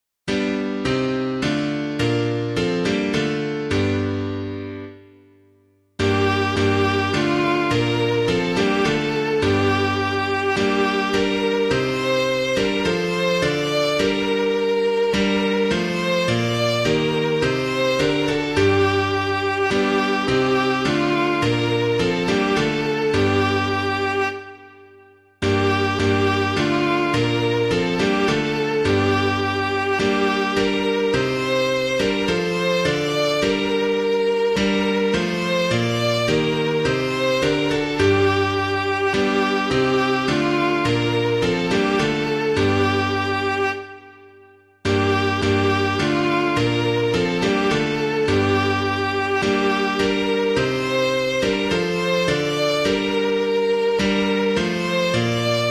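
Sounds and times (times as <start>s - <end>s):
piano playing a hymn: 0.3s - 55.6s.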